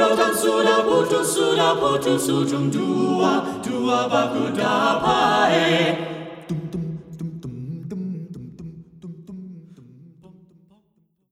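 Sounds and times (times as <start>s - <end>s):
SATB four-part choir singing: 0.0s - 7.6s.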